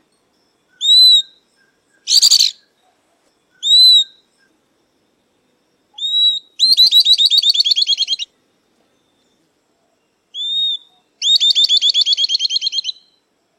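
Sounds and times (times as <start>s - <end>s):
southern beardless-tyrannulet song: 0.8s - 3.0s, 3.6s - 4.5s, 6.0s - 8.3s, 10.4s - 13.2s.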